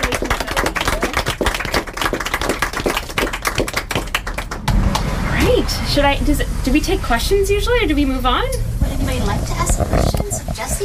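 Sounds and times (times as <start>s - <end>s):
group applauding: 0.0s - 5.1s
rumbling wash of noise: 1.4s - 10.8s
speech: 6.0s - 8.7s.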